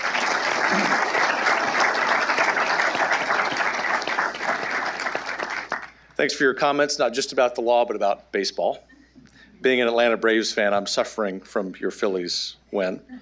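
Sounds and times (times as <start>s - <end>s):
crowd applauding: 0.0s - 6.0s
speech: 6.2s - 8.9s, 9.6s - 13.2s.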